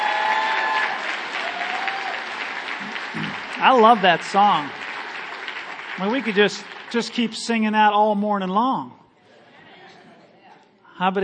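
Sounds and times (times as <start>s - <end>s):
audience hand clapping: 0.0s - 7.8s
speech: 3.1s - 4.8s, 6.0s - 9.0s, 11.0s - 11.2s.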